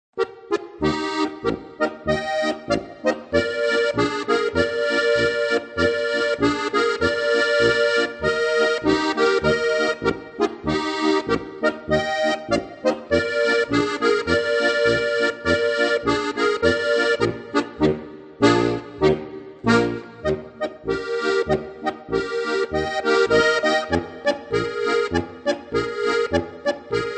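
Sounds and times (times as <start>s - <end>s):
polka music: 0.2s - 27.1s.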